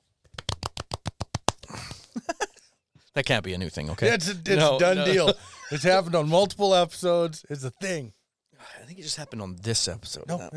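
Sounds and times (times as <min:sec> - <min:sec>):
soft golf clap: 0:00.3 - 0:01.9
speech: 0:03.2 - 0:10.5
laughter: 0:04.1 - 0:06.5.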